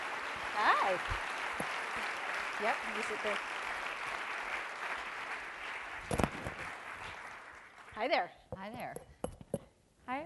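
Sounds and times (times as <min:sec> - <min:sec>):
audience applause welcoming a guest at a Traverse City event: 0:00.0 - 0:08.1
speech: 0:00.6 - 0:01.7, 0:02.6 - 0:03.5, 0:08.0 - 0:09.1, 0:10.1 - 0:10.2.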